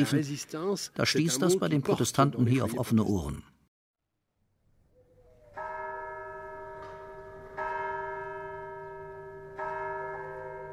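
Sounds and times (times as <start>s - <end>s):
speech: 0.0s - 3.6s
church bell tolling in the bell tower of Dieulefit, Provence, France: 5.2s - 10.7s.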